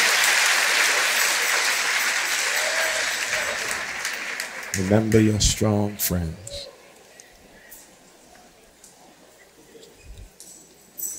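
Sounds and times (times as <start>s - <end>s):
audience hand clapping: 0.0s - 5.9s
speech: 4.8s - 6.7s.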